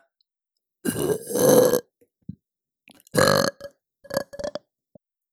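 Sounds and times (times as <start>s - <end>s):
loud burps: 0.9s - 1.9s, 3.1s - 4.6s.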